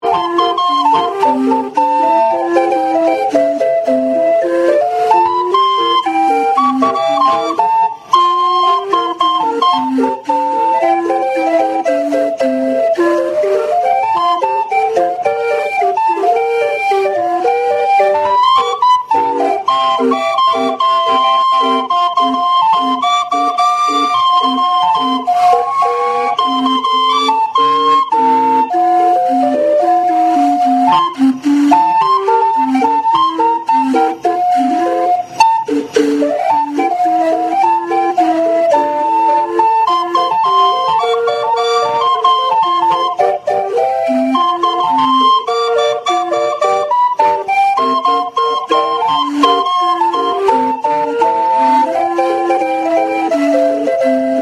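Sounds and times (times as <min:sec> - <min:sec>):
calliope: 0:00.0 - 0:54.3.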